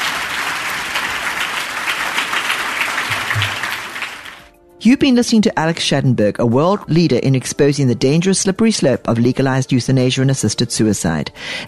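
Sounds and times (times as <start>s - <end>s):
audience applause: 0.0s - 4.5s
speech: 4.8s - 11.6s.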